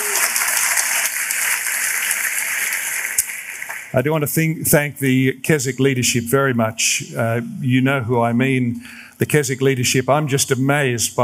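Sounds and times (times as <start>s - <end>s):
audience applause: 0.0s - 4.0s
speech: 3.9s - 11.2s.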